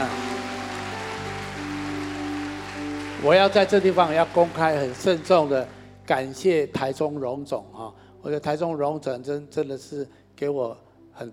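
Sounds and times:
applause: 0.0s - 6.5s
speech: 3.2s - 11.3s.

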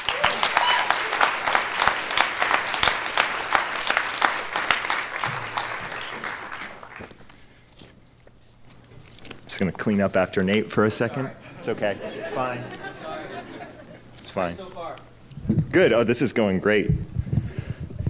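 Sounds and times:
audience applause at the LA Times Festival of Books: 0.0s - 7.2s
laughter: 5.5s - 8.4s, 10.4s - 12.2s
speech: 9.6s - 12.8s, 14.4s - 15.0s, 15.7s - 17.1s.

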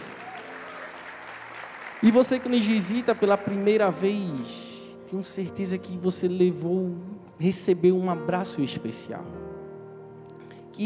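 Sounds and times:
crowd applause: 0.0s - 4.0s
speech: 2.0s - 9.6s.

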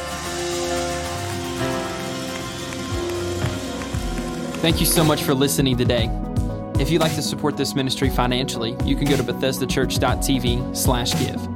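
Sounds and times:
audience cheering and clapping: 0.0s - 5.6s
sustained musical tones: 0.0s - 6.9s
speech: 4.6s - 11.5s.

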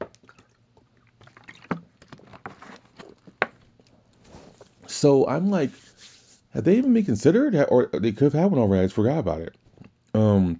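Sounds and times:
person drinking water: 0.1s - 3.4s
speech: 5.0s - 5.9s, 6.5s - 9.6s, 10.2s - 10.5s.

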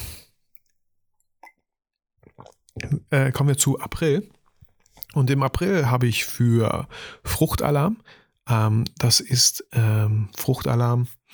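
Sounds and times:
faint gulping and wet mouth clicks: 1.4s - 1.6s, 2.2s - 5.2s
person sipping water: 2.2s - 5.3s
speech: 3.1s - 4.4s, 5.2s - 11.3s.

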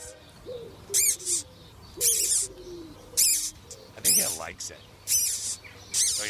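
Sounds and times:
Taiwanese squeaking silk moth caterpillar squeaking: 0.9s - 2.5s, 3.2s - 6.2s
speech: 4.2s - 5.2s.

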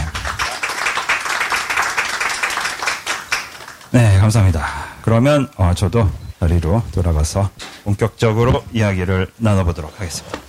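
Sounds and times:
audience clapping: 0.0s - 4.1s
speech: 3.9s - 10.4s.

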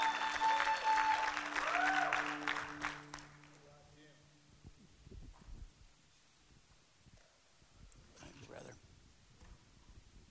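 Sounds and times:
audience applauding at a church gathering to welcome a speaker: 0.0s - 3.8s.

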